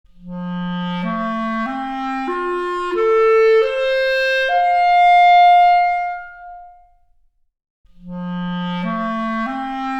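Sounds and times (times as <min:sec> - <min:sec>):
clarinet arpeggio: 0:00.8 - 0:06.7, 0:08.2 - 0:09.9.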